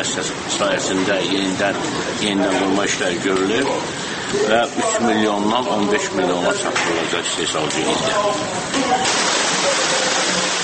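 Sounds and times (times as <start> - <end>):
speech: 0.0 - 9.9
sudden heavy rain turning into hail during an opening ceremony: 9.0 - 10.6.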